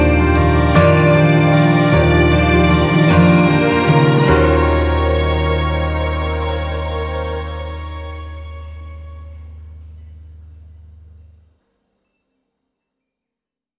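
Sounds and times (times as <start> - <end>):
instrumental music: 0.0 - 10.9.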